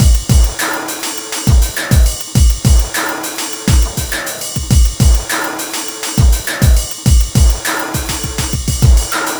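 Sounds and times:
processed beat with drums and percussion: 0.0 - 9.3.

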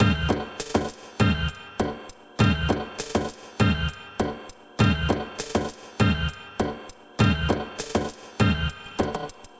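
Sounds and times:
electronic maqsum rhythm: 0.0 - 9.5.

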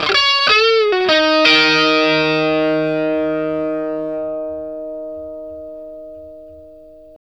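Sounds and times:
vintage blues guitar: 0.0 - 7.2.

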